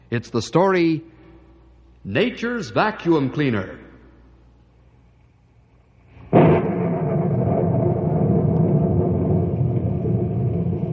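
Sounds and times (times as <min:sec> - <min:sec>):
speech: 0:00.1 - 0:01.1, 0:02.0 - 0:03.8
rolling thunder from passing thunderheads: 0:06.3 - 0:10.9.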